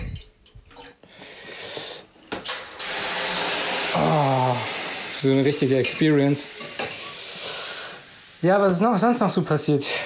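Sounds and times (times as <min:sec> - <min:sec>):
steam hissing and sizzling from sauna infusion: 0:01.7 - 0:10.0
water poured onto hot sauna stones: 0:02.6 - 0:09.8
speech: 0:05.2 - 0:06.6, 0:08.4 - 0:10.0.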